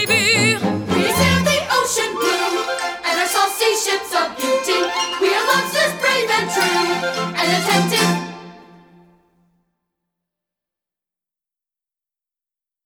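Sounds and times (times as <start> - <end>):
guided vocal: 0.0 - 8.3.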